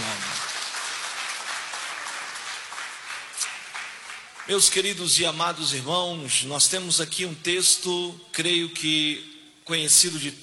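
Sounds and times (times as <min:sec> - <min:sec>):
audience applauding: 0:00.0 - 0:04.9
speech: 0:04.5 - 0:10.4.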